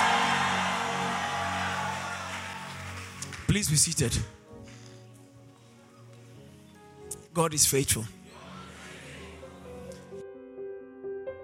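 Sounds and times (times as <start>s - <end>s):
audience shouting: 0.0s - 3.2s
audience clapping: 0.0s - 4.1s
speech: 3.5s - 4.4s, 7.4s - 8.2s.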